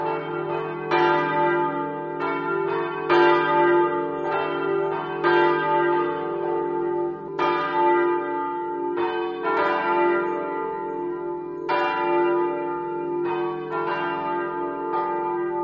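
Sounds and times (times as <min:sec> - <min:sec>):
bells ringing in Rosazzo: 0:00.0 - 0:15.6.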